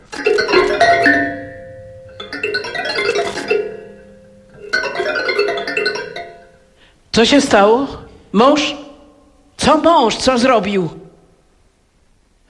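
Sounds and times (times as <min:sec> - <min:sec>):
doorbell or telephone ringing: 0:00.3 - 0:06.5
speech: 0:07.2 - 0:08.8, 0:09.6 - 0:11.0.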